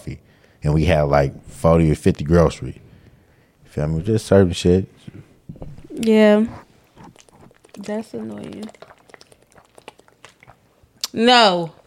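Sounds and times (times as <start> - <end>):
speech: 0.0 - 2.8, 3.7 - 6.6, 7.8 - 8.8, 11.1 - 11.8
loud swallowing of water: 5.5 - 11.8.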